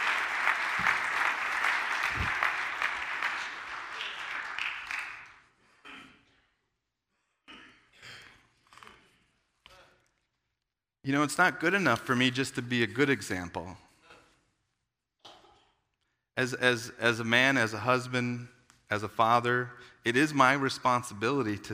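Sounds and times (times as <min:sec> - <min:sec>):
crowd applauding: 0:00.0 - 0:05.5
speech: 0:11.1 - 0:13.9, 0:16.4 - 0:21.7.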